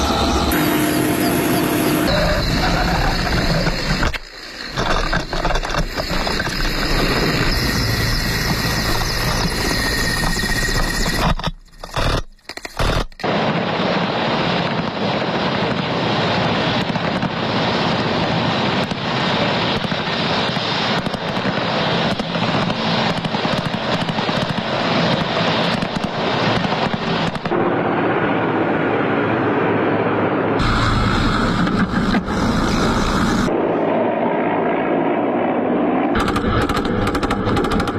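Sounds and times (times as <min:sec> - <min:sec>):
military helicopter rotors whirring overhead: 0:00.0 - 0:37.9.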